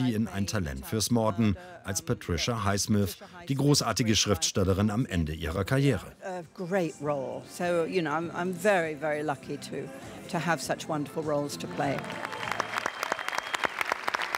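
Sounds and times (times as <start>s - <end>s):
speech: 0.0s - 12.4s
cinema audience applause: 11.7s - 14.3s.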